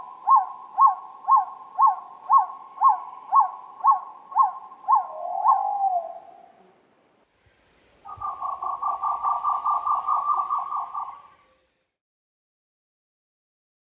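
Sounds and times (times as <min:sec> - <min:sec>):
bird hooting calls in Peru: 0:00.0 - 0:06.7, 0:08.1 - 0:11.3.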